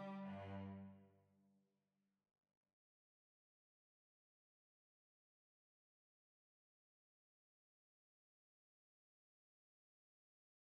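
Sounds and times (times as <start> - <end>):
cello playing a skotsk: 0.0 - 1.0.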